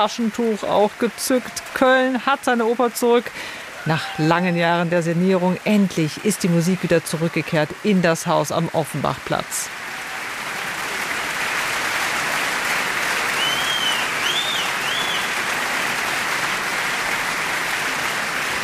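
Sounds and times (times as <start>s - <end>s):
speech: 0.0s - 9.8s
opera audience applause: 0.0s - 18.6s
high whistles: 13.3s - 15.4s.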